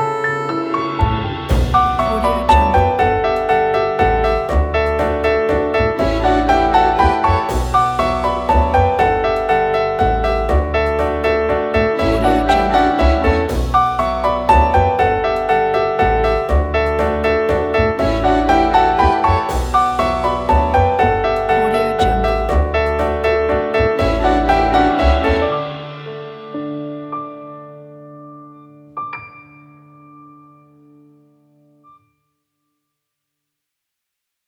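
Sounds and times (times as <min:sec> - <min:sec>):
uplifting tango music: 0:00.0 - 0:27.0.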